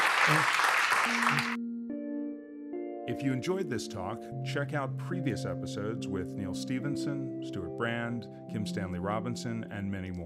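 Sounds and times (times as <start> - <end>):
audience applause: 0.0 - 1.6
speech: 0.3 - 1.8, 3.1 - 10.2.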